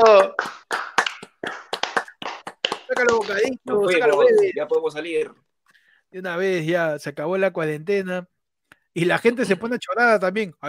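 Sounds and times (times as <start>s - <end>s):
hand clapping: 0.0s - 4.6s
speech: 3.0s - 5.4s, 6.1s - 8.3s, 9.0s - 10.6s.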